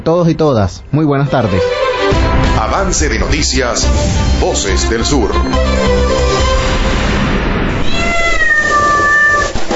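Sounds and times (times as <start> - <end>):
speech: 0.0 - 1.9, 2.6 - 7.0
cats meowing and caterwauling: 7.8 - 9.6.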